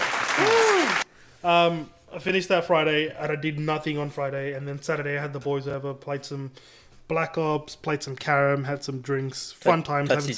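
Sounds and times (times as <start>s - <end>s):
cheering whoop: 0.0s - 1.0s
clapping: 0.0s - 1.1s
speech: 1.4s - 10.3s.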